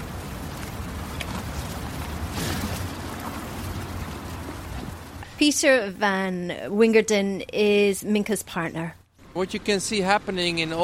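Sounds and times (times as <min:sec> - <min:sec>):
brown and white cows munching on hay: 0:00.6 - 0:05.0
speech: 0:05.4 - 0:10.8.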